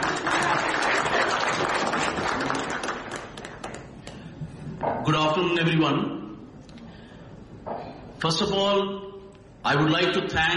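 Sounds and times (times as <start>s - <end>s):
audience applause: 0.0s - 4.0s
speech: 5.1s - 6.2s, 8.2s - 10.5s.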